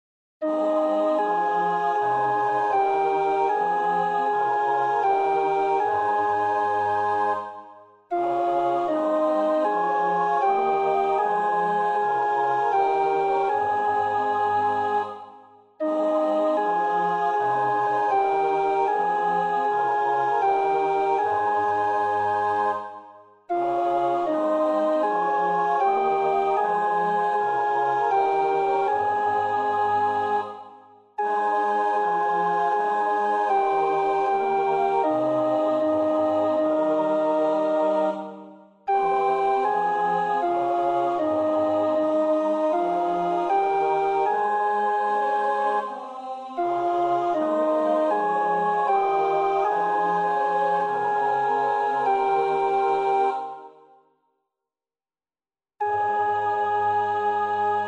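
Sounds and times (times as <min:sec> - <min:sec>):
alto choir part practice singing: 0:00.4 - 0:54.0, 0:55.8 - 0:57.8.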